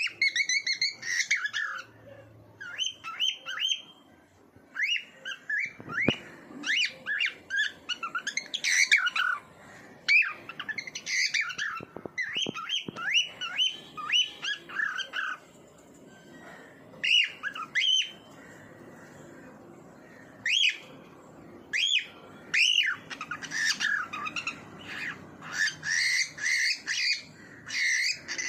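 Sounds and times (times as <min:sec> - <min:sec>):
bird calling with whistled upslurs, harsh squawks and chirps: 0:00.0 - 0:02.0, 0:02.6 - 0:04.0, 0:04.7 - 0:09.4, 0:10.0 - 0:15.4, 0:16.4 - 0:18.3, 0:20.4 - 0:21.0, 0:21.7 - 0:28.4.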